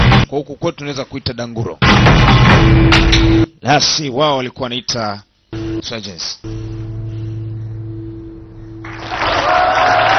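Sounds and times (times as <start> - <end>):
speech: 0.3 - 6.6
low steady hum: 5.3 - 9.2
crowd cheering after a performance: 8.8 - 10.1.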